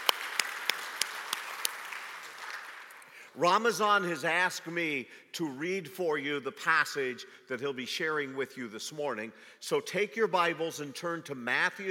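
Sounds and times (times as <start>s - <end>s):
church congregation applauding a guest from Turkey: 0.0s - 3.4s
speech: 3.4s - 11.8s.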